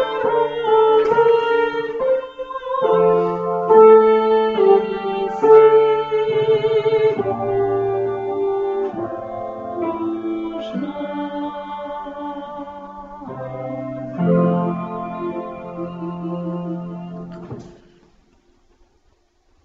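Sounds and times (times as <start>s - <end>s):
tenor singing: 0.0s - 17.9s.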